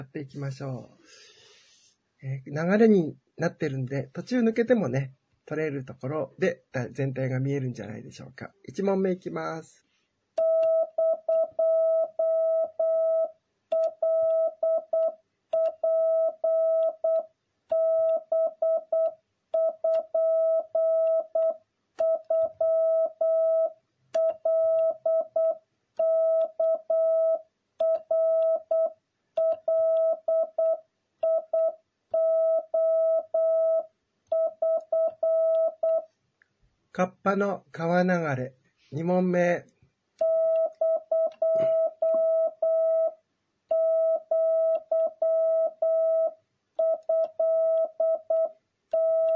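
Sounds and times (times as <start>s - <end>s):
speech: 0.0s - 1.3s, 2.2s - 9.9s, 37.3s - 39.7s
Japanese wabun Morse code practice tones: 10.4s - 36.1s, 40.2s - 49.3s.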